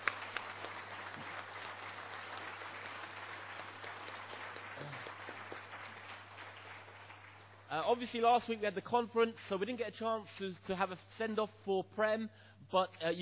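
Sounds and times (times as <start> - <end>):
audience applause: 0.0 - 7.7
speech: 7.7 - 13.2.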